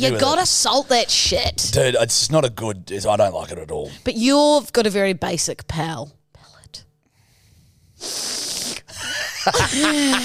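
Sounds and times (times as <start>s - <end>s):
speech: 0.0s - 6.8s, 9.4s - 10.2s
sniffing in through the nose: 7.2s - 9.0s
laughter: 9.0s - 10.2s.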